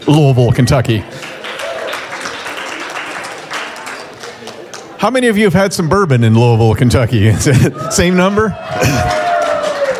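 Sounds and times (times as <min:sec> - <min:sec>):
speech: 0:00.1 - 0:01.2, 0:05.0 - 0:09.2
audience applause: 0:01.1 - 0:04.9, 0:08.8 - 0:09.9.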